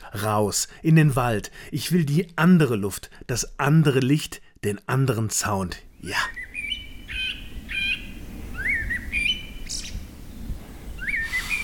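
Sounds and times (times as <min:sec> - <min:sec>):
soft constant hiss: 0:00.0 - 0:11.6
speech: 0:00.1 - 0:06.4
forest birds singing at evening: 0:05.4 - 0:11.6.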